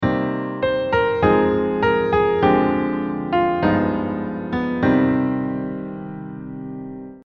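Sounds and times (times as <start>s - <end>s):
melody: 0.1s - 6.7s.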